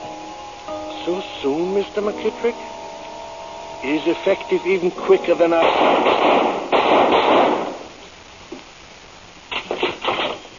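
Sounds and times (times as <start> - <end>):
speech: 1.0 - 2.8, 3.8 - 7.7
sharp cracks: 5.2 - 8.7, 9.5 - 10.5
gunshot: 5.6 - 7.9, 9.6 - 10.4.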